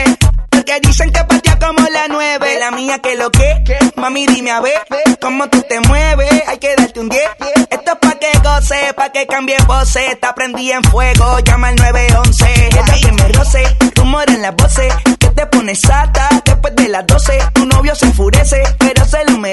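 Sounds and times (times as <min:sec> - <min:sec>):
drums: 0:00.0 - 0:19.5.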